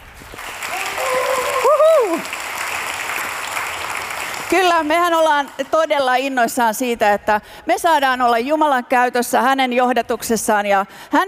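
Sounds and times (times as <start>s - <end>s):
crowd applauding: 0.0s - 5.6s
person cheering with a whoop: 0.7s - 2.3s
speech: 4.8s - 11.2s.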